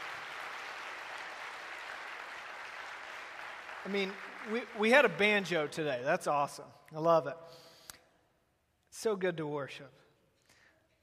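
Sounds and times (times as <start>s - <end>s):
applause: 0.0s - 6.0s
speech: 3.8s - 7.6s, 9.0s - 10.0s.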